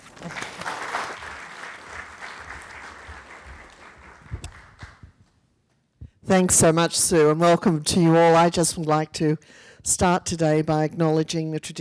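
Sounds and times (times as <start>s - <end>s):
audience applause welcoming a speaker at a museum talk: 0.0s - 5.2s
speech: 6.3s - 11.7s.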